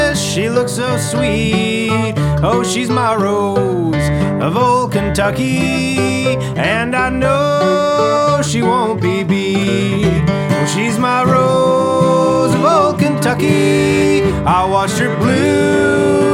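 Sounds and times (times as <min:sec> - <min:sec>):
music piece in key G: 0:00.0 - 0:16.3.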